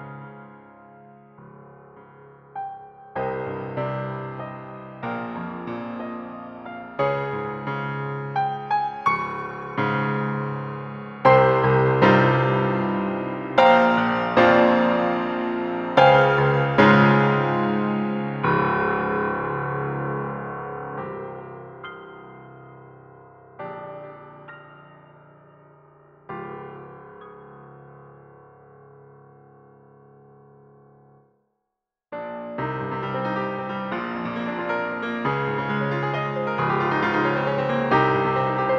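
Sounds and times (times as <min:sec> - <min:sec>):
piano refrain: 0:00.0 - 0:31.1, 0:32.2 - 0:38.7.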